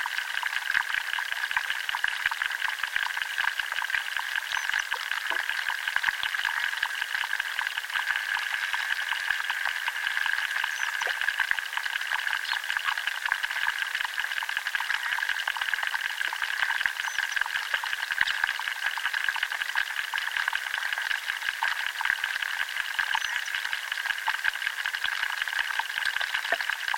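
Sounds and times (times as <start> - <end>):
underwater life clicking in a chalk river in southern England: 0.0 - 26.9.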